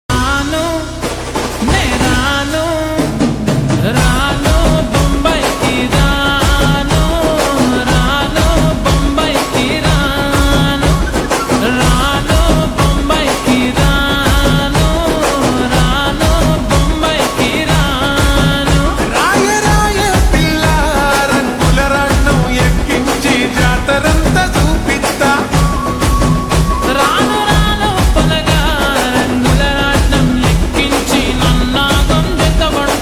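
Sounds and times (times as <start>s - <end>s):
slowed reverb music: 0.1s - 33.0s.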